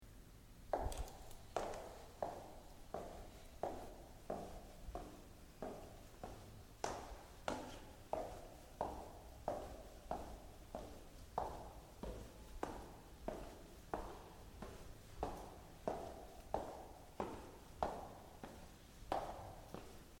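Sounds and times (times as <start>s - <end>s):
footsteps walking down hotel stairs: 0.7s - 20.1s.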